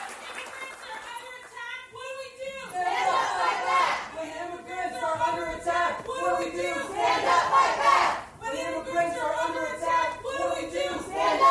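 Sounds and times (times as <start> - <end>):
conference audience shouting protest chants: 2.7 - 4.2, 5.3 - 11.4.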